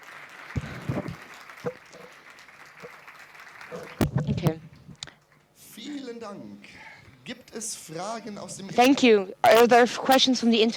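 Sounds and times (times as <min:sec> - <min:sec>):
sparse audience applause: 0:00.0 - 0:04.1
speech: 0:06.2 - 0:10.7.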